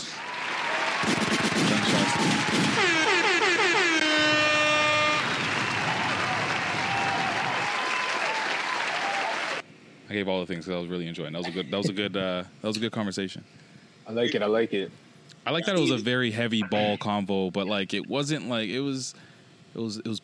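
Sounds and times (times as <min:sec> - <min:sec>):
canned applause effect with clapping and cheering: 0:00.0 - 0:09.6
air horn blasts: 0:01.7 - 0:05.5
speech: 0:10.2 - 0:20.2.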